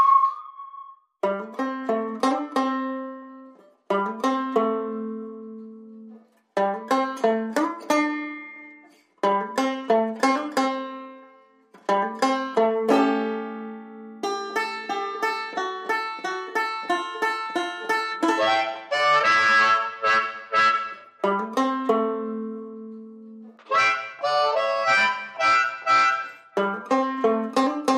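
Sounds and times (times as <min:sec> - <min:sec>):
whistle: 0:00.0 - 0:01.2
banjo playing blues: 0:01.2 - 0:27.9
harmonica: 0:17.8 - 0:21.3, 0:23.6 - 0:27.2.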